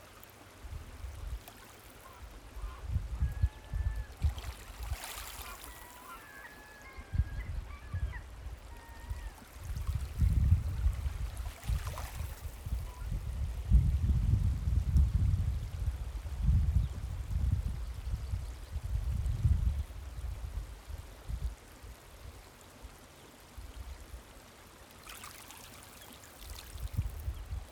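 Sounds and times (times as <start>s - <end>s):
wind in Bay Roberts Newfoundland: 0.0s - 27.7s
gulls in Bay Roberts Newfoundland: 5.0s - 9.4s.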